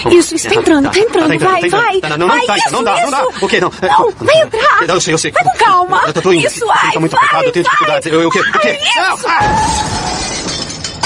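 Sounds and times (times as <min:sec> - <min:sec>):
speech: 0:00.0 - 0:10.2
glass shattering in a car crash while parking: 0:09.4 - 0:11.0
tinkling glass shards: 0:09.7 - 0:11.0.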